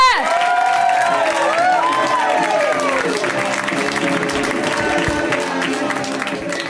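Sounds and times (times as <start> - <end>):
high whoops: 0.0 - 3.1
stand-up comedy show audience clapping: 0.0 - 6.6.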